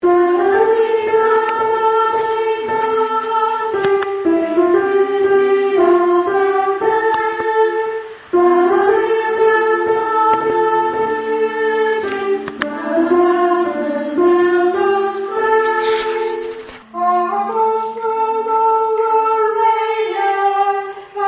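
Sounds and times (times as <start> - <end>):
soprano singers: 0.0 - 21.2.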